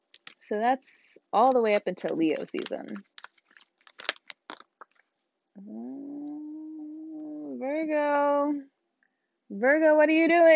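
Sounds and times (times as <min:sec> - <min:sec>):
tarot cards shuffling: 0:00.0 - 0:00.4, 0:01.5 - 0:05.2
speech: 0:00.5 - 0:03.1, 0:07.8 - 0:08.7, 0:09.5 - 0:10.5.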